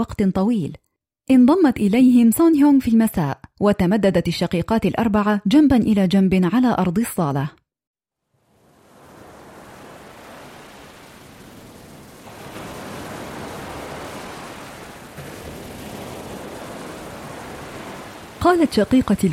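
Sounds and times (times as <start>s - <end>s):
speech: 0.0s - 7.6s, 18.4s - 19.3s
ocean waves: 8.2s - 19.3s.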